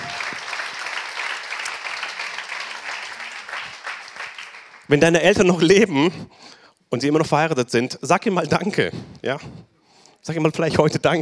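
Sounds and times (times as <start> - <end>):
audience applause: 0.0 - 5.0
speech: 4.9 - 11.2.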